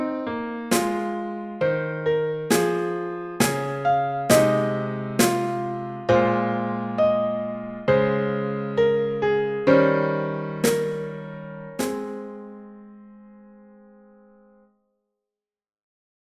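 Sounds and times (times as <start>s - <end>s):
piano at 67 bpm: 0.0s - 14.6s
drum at 67 bpm: 0.7s - 1.2s, 2.5s - 5.8s, 10.6s - 11.2s, 11.8s - 12.3s.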